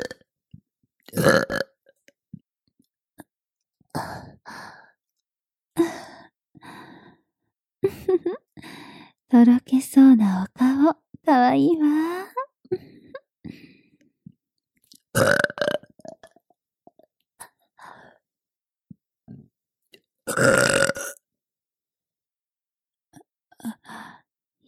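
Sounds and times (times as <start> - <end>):
woman burping: 0.0 - 0.2, 1.1 - 1.8, 15.1 - 16.5, 20.3 - 21.2
speech: 9.4 - 12.3.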